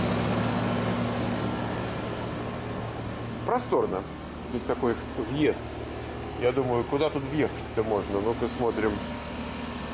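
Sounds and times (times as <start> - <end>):
air conditioner running: 0.0 - 9.9
speech: 3.5 - 9.2.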